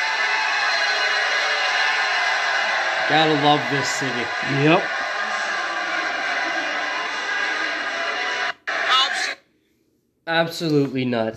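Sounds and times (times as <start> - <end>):
crowd screaming: 0.0 - 9.4
laughter: 0.6 - 9.2
speech: 3.1 - 5.0, 10.3 - 11.3.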